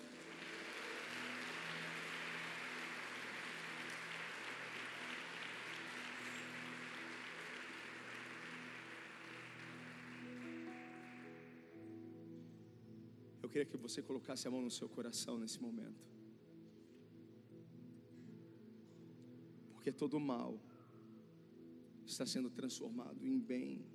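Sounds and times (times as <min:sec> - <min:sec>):
audience applauding: 0:00.0 - 0:11.6
speech: 0:13.5 - 0:16.2, 0:19.9 - 0:20.7, 0:22.1 - 0:23.9.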